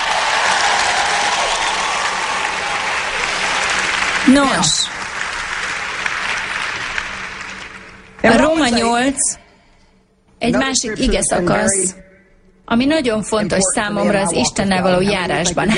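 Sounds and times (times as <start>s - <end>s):
audience applause: 0.0s - 8.6s
speech: 4.3s - 4.8s, 8.7s - 9.4s, 10.4s - 12.1s, 12.7s - 15.7s.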